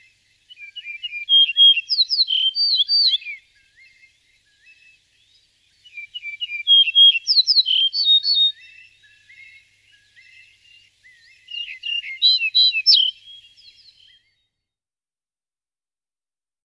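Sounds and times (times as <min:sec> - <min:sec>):
yellow-breasted bunting singing: 0:00.0 - 0:14.7.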